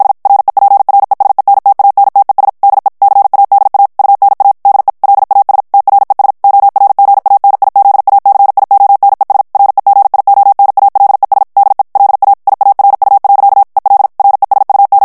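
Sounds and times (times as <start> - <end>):
Morse code of Spanish plain text at 50 words per minute: 0.0 - 15.0.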